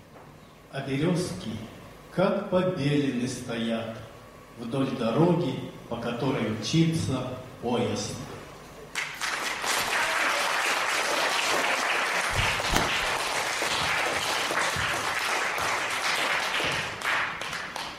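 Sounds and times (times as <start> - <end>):
speech: 0.7 - 8.3
enthusiastic audience applause: 9.0 - 17.9.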